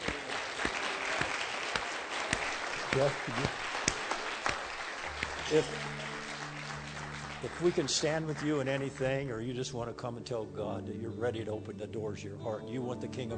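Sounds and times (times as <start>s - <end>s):
audience clapping: 0.0s - 9.7s
speech: 2.9s - 3.7s, 5.5s - 6.0s, 7.4s - 13.3s.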